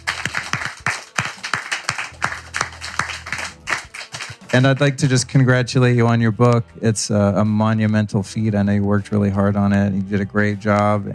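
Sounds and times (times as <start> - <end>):
live audience applause at a Q&A event in Malibu: 0.0 - 5.0
speech: 4.5 - 11.1.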